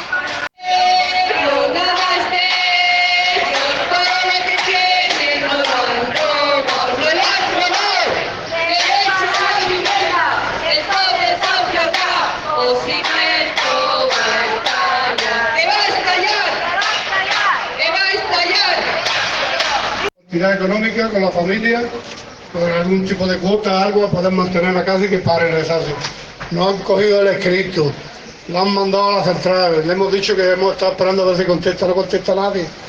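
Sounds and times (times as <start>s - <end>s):
protest crowd shouting at a rally: 0.0s - 20.1s
speech: 20.4s - 32.8s.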